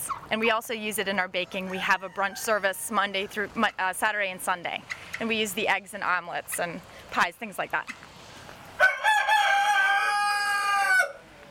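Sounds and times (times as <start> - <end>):
speech: 0.3 - 8.1
rooster crowing: 8.8 - 11.3.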